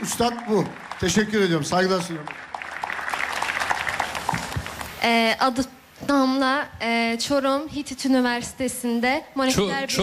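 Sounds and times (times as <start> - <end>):
speech: 0.0 - 2.6, 5.0 - 10.0
audience applause: 0.0 - 5.0.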